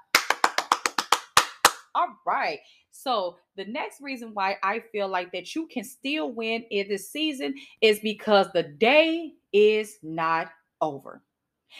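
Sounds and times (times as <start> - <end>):
person clapping: 0.0 - 1.9
speech: 2.0 - 11.7.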